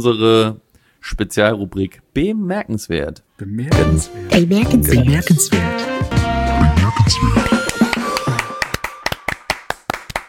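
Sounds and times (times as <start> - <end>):
speech: 0.0 - 7.6
brief sparse clapping: 7.4 - 10.2.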